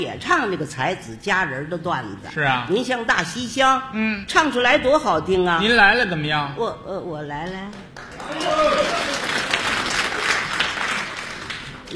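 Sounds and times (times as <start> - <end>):
speech: 0.0 - 9.2
audience applause: 8.0 - 11.9.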